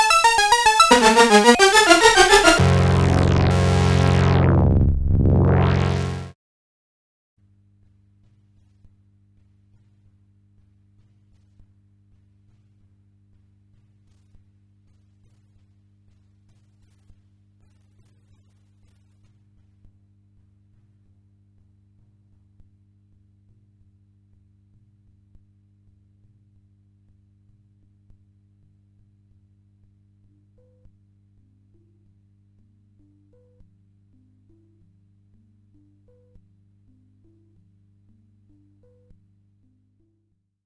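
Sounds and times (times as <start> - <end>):
Moog modular synthesizer: 0.0 - 6.3.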